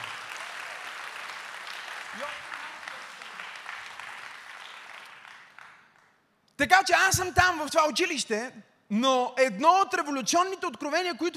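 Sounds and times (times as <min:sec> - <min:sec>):
crowd applauding: 0:00.0 - 0:06.2
speech: 0:02.2 - 0:02.6, 0:06.6 - 0:11.3.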